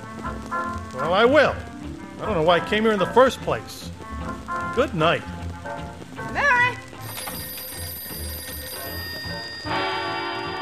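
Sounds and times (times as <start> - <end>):
speech: 0.5 - 3.9, 4.8 - 5.4
telephone bell ringing with a rattling metallic trill: 7.0 - 10.6.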